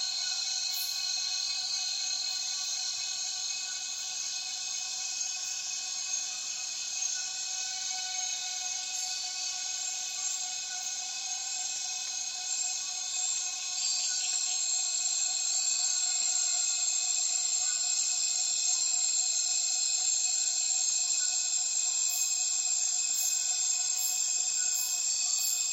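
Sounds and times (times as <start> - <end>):
cicadas droning: 0.0 - 25.7.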